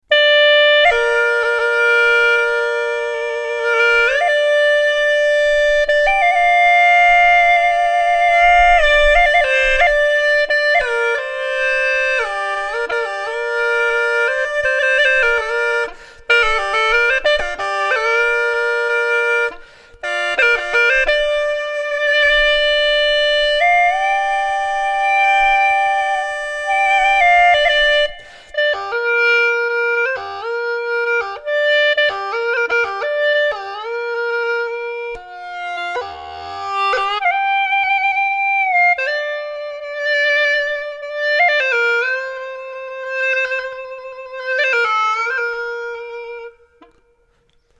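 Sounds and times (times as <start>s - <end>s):
hulusi flute: 0.0s - 47.7s.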